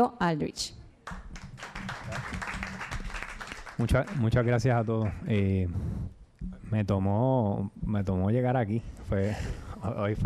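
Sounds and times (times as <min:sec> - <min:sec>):
speech: 0:00.0 - 0:01.2, 0:03.8 - 0:10.2
audience applause: 0:01.1 - 0:05.5.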